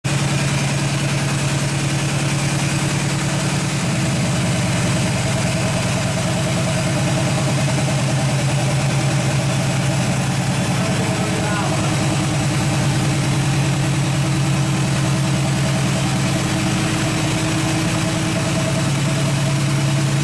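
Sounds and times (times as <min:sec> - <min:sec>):
air compressor: 0:00.1 - 0:20.2.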